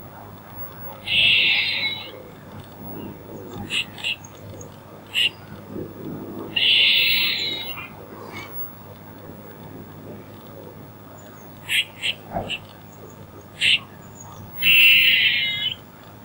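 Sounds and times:
squirrel uttering a short harsh buzzing chatter: 0:00.6 - 0:02.1, 0:02.9 - 0:04.4, 0:05.1 - 0:05.4, 0:06.5 - 0:07.9, 0:11.6 - 0:12.8, 0:13.6 - 0:13.9, 0:14.5 - 0:15.8.

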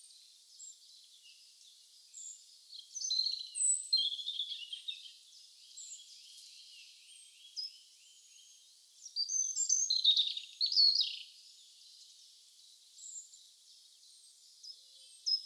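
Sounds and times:
birds singing with sharp high chirps and twitters: 0:00.0 - 0:15.4.

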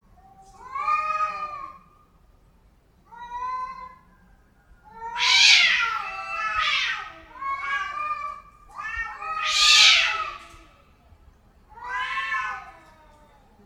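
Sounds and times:
domestic cats in heat caterwauling: 0:00.2 - 0:01.9, 0:04.9 - 0:10.6, 0:11.7 - 0:13.5.

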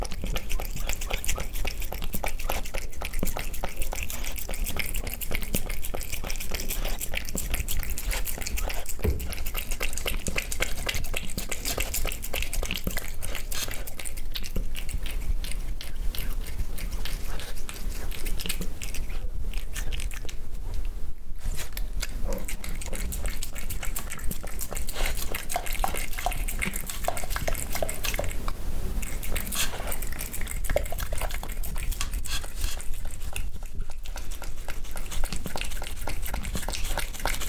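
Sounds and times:
cat eating: 0:00.0 - 0:37.4.

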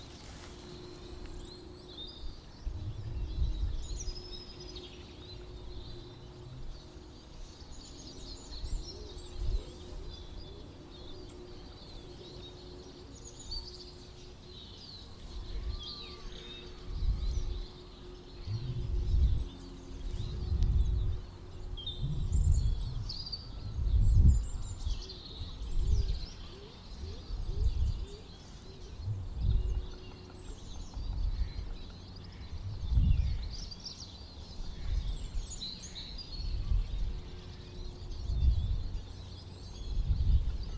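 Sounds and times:
wind gusts: 0:00.0 - 0:07.6, 0:16.7 - 0:26.5, 0:28.8 - 0:30.0, 0:30.8 - 0:33.8, 0:36.2 - 0:40.7
birds twittering: 0:00.0 - 0:40.7
low hum: 0:00.0 - 0:40.7.

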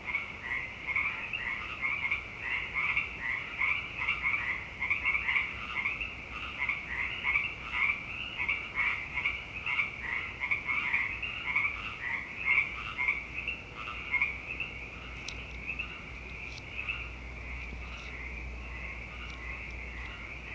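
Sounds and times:
frog chorus croaking: 0:00.0 - 0:20.5
faint clicks: 0:15.1 - 0:17.0, 0:19.2 - 0:20.2.

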